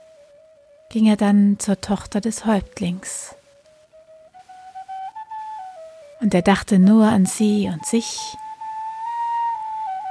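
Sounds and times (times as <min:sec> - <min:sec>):
lone flute playing a breathy melody: 0:00.0 - 0:01.1, 0:03.4 - 0:10.0
speech: 0:00.9 - 0:03.4, 0:06.2 - 0:08.4.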